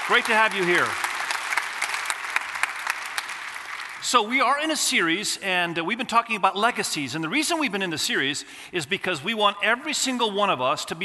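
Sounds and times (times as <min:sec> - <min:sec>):
audience applause welcoming online viewers: 0:00.0 - 0:04.0
speech: 0:00.1 - 0:01.0, 0:04.0 - 0:11.0.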